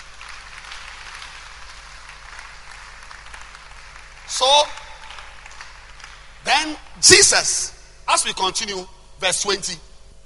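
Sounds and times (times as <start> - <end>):
audience clapping: 0.0 - 6.8
speech: 4.3 - 4.8, 6.5 - 9.9.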